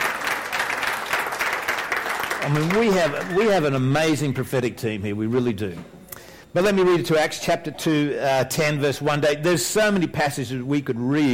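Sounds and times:
audience clapping: 0.0s - 3.9s
speech: 2.4s - 11.3s.

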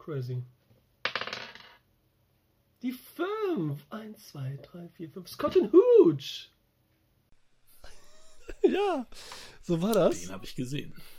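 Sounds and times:
speech: 0.0s - 0.6s, 2.8s - 6.5s, 8.6s - 11.1s
dice clattering across a hard surface: 1.1s - 1.8s
laughter: 7.8s - 9.2s.

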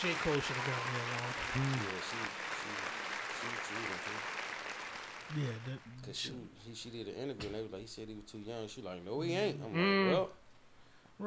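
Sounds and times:
speech: 0.0s - 4.4s, 5.3s - 10.4s
applause: 0.0s - 5.8s.

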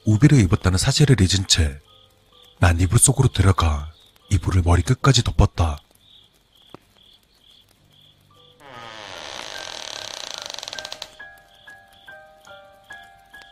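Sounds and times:
speech: 0.1s - 1.9s, 2.6s - 5.9s
creaking door slowly opening: 8.6s - 11.4s.

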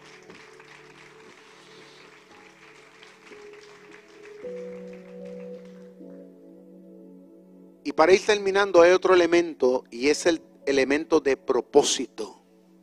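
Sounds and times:
audience applause: 0.0s - 6.0s
speech: 8.0s - 12.4s.

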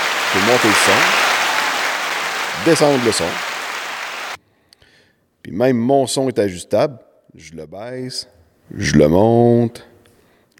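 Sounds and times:
recorded applause sound effect: 0.0s - 4.4s
speech: 0.3s - 1.2s, 2.6s - 3.5s, 5.5s - 9.9s.

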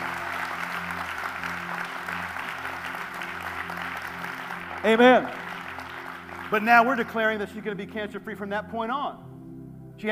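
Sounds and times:
audience hand clapping: 0.0s - 7.6s
speech: 4.8s - 5.4s, 6.5s - 9.3s.

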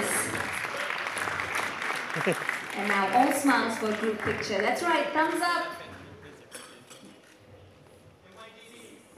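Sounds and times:
round of applause: 0.0s - 4.7s
speech: 2.2s - 5.8s.

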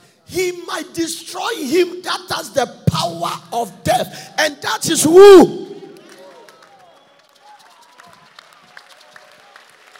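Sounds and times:
speech: 0.3s - 5.6s
audience hand clapping: 5.8s - 9.9s.

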